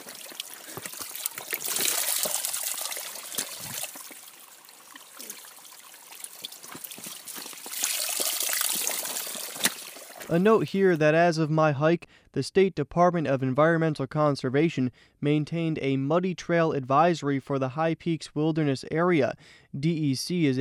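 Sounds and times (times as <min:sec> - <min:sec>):
creek water rushing: 0:00.0 - 0:10.4
speech: 0:10.3 - 0:20.5.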